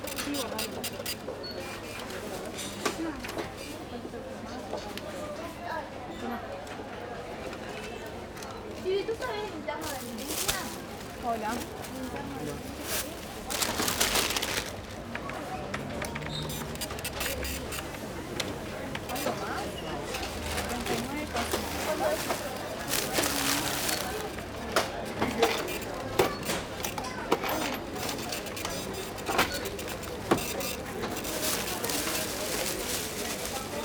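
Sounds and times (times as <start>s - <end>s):
supermarket cash register: 0.0s - 1.2s, 15.8s - 32.9s
people talking in Spanish in a supermarket: 0.0s - 33.8s
items being bagged at a supermarket checkout: 9.7s - 15.3s, 16.2s - 26.9s, 27.9s - 33.8s.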